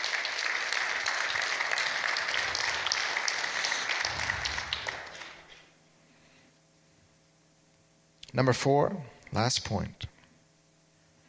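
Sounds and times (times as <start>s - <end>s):
audience clapping hands: 0.0s - 5.7s
speech: 8.4s - 10.1s.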